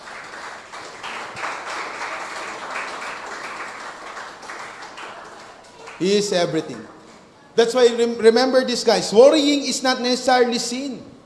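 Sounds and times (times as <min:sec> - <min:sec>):
church congregation clapping hands: 0:00.0 - 0:07.0
speech: 0:06.0 - 0:07.0, 0:07.6 - 0:11.1.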